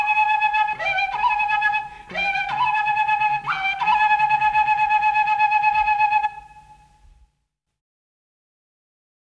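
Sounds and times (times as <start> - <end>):
South American Indian flutes playing an Andean dance: 0.0 - 7.2.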